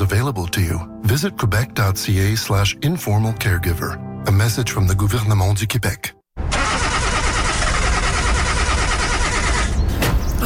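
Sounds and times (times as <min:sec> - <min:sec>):
speech: 0:00.1 - 0:06.2
car engine failing to start: 0:06.4 - 0:10.4.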